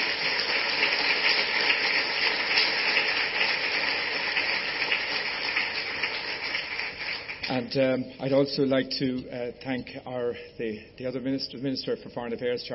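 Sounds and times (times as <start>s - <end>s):
audience applauding: 0.0s - 7.7s
speech: 7.6s - 12.7s.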